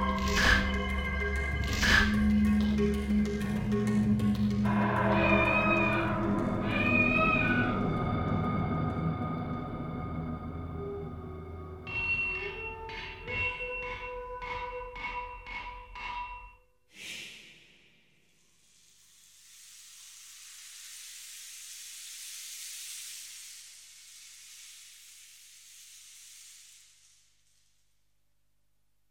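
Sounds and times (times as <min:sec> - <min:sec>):
atmosphere: 0:00.0 - 0:16.5.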